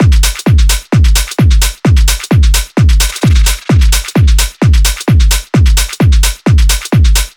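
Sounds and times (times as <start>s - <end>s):
techno drum loop at 130 bpm: 0.0s - 7.3s.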